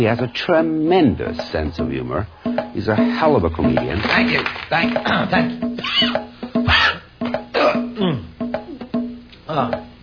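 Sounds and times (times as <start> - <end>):
speech: 0.0 - 6.3, 9.6 - 9.9
person coughing from something caught in the throat: 5.8 - 8.3.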